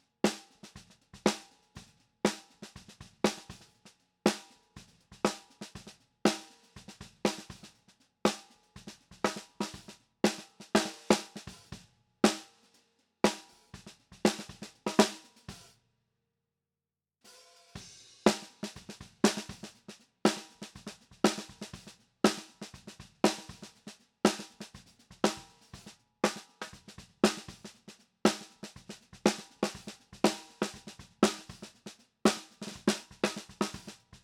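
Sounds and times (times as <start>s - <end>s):
snare drum: 0.3s - 1.6s, 2.3s - 3.7s, 4.3s - 12.6s, 13.3s - 15.7s, 17.3s - 34.2s.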